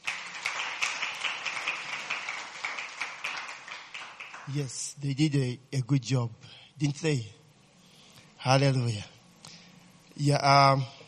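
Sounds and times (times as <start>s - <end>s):
audience hand clapping: 0.0s - 4.8s
speech: 4.5s - 7.4s, 8.4s - 9.1s, 10.2s - 11.0s.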